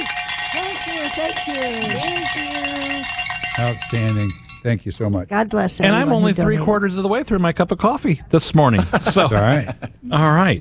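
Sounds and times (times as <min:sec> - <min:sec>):
bells ringing: 0:00.0 - 0:04.8
speech: 0:01.2 - 0:10.6
laughter: 0:08.7 - 0:10.1.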